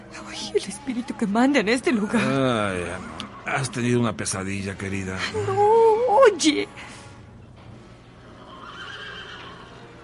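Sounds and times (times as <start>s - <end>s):
speech: 0.5s - 6.9s
horse neighing: 2.1s - 4.0s, 8.2s - 10.0s.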